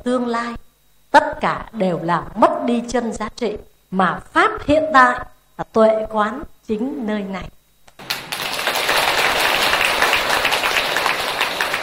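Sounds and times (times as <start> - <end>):
speech: 0.0 - 0.6, 1.2 - 7.6
audience applause at a Buddhist dharma talk: 8.0 - 11.8.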